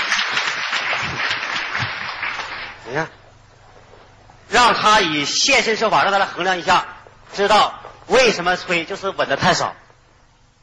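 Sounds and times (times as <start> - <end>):
audience applause: 0.0 - 3.0
speech: 2.9 - 3.2, 4.5 - 9.8.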